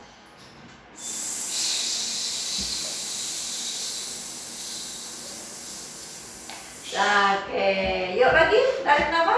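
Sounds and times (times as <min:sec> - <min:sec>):
voice making a hissing S sound: 0:01.0 - 0:07.4
speech: 0:06.9 - 0:09.3.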